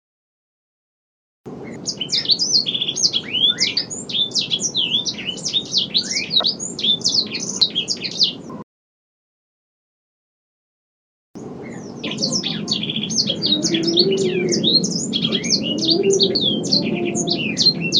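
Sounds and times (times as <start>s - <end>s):
bird singing vigorously: 1.5s - 8.6s, 11.4s - 17.9s.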